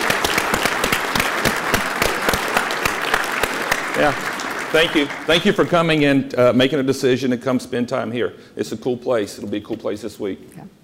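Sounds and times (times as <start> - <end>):
audience applause: 0.0 - 6.2
speech: 4.0 - 10.8.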